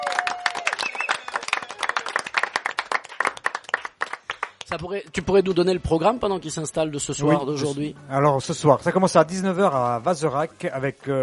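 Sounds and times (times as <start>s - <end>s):
audience applauding the musicians: 0.0s - 4.8s
speech: 4.7s - 11.2s.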